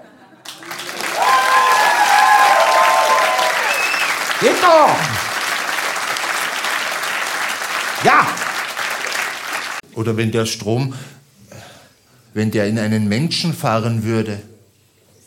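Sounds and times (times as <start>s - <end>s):
audience applause: 0.4s - 9.8s
speech: 4.6s - 5.2s, 10.0s - 11.2s, 12.4s - 14.5s.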